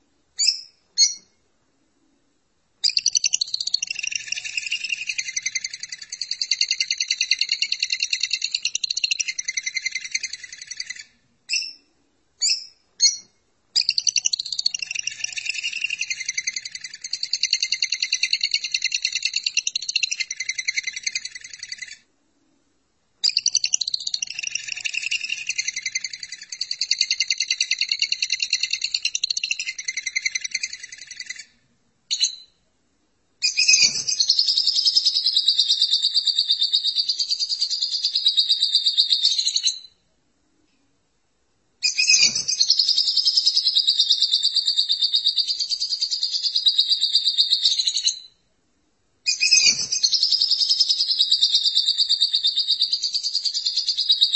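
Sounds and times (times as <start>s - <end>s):
lovebird chattering: 2.8s - 11.8s, 13.8s - 22.0s, 23.2s - 31.5s, 33.4s - 39.9s, 41.8s - 48.3s, 49.3s - 54.3s.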